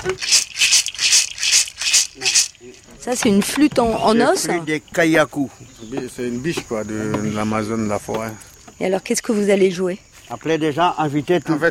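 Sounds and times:
maracas rattling: 0.0 - 3.6
speech: 3.1 - 11.6.

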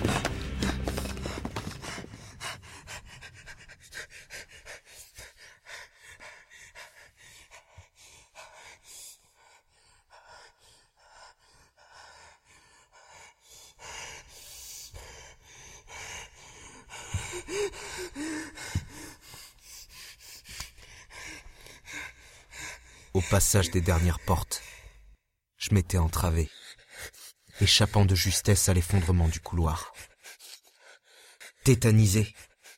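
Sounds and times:
person catching breath: 0.0 - 25.2, 26.5 - 32.7
speech: 23.3 - 24.7, 25.7 - 26.6, 27.6 - 29.9, 31.7 - 32.5.

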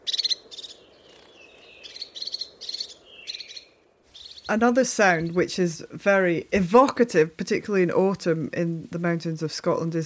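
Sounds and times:
crested tit trilled calls: 0.0 - 5.6
speech: 4.5 - 10.0.

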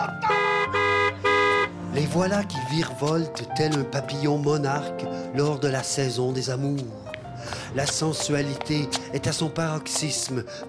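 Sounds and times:
car horns honking: 0.2 - 1.9
speech: 2.0 - 10.6.

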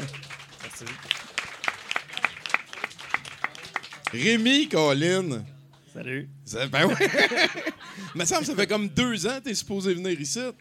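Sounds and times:
audience applause: 0.0 - 4.7
speech: 0.8 - 1.2, 4.1 - 10.5
laughter: 6.8 - 8.6.

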